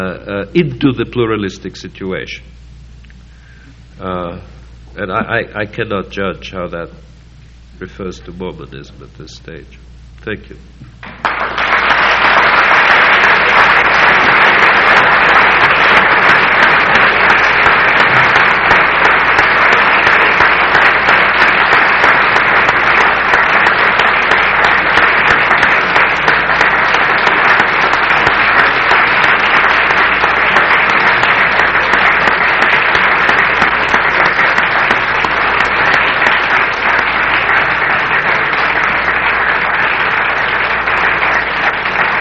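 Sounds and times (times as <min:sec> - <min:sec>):
speech: 0:00.0 - 0:02.6, 0:04.0 - 0:07.1, 0:07.8 - 0:11.0
audience applause after a lecture: 0:11.0 - 0:42.1.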